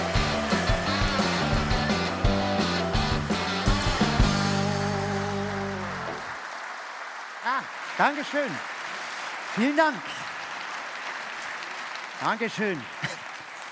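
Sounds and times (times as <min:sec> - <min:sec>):
loud upbeat band music: 0:00.0 - 0:06.4
large audience applause: 0:00.0 - 0:13.7
speech: 0:08.0 - 0:08.7, 0:09.6 - 0:10.2, 0:12.2 - 0:13.1.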